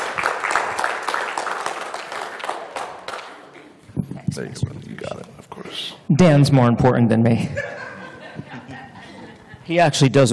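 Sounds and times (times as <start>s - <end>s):
audience applause: 0.0s - 3.6s
speech: 4.4s - 7.7s, 9.7s - 10.3s
laughter: 7.4s - 9.7s.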